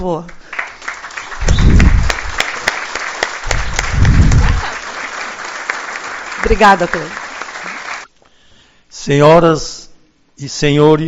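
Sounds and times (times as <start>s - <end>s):
speech: 0.0s - 0.4s, 6.4s - 7.2s, 9.0s - 9.8s, 10.4s - 11.0s
audience applause: 0.4s - 8.1s.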